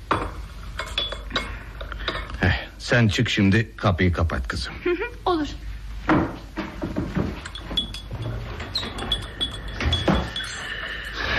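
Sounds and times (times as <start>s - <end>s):
tea tray with glasses set down: 0.1s - 2.3s, 7.4s - 11.2s
speech: 2.8s - 6.3s.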